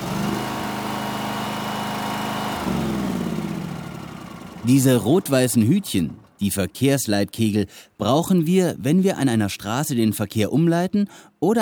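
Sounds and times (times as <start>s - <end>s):
compressor powering a hydraulic rescue spreader: 0.0s - 6.6s
speech: 4.6s - 11.6s.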